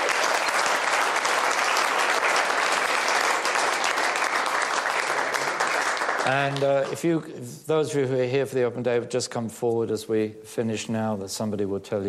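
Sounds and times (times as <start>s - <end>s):
congregation-style audience applause welcoming open day visitors: 0.0s - 7.2s
speech: 6.3s - 12.0s.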